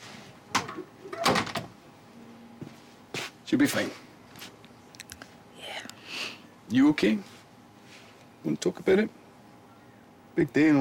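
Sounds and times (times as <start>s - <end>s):
door closing: 0.6s - 1.7s
speech: 3.5s - 4.1s, 6.7s - 7.3s, 8.4s - 9.2s, 10.4s - 10.7s.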